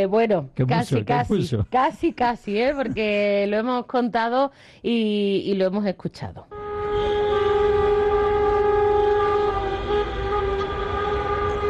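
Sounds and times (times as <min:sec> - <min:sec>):
speech: 0:00.0 - 0:06.5
car horns honking in protest: 0:06.5 - 0:11.6.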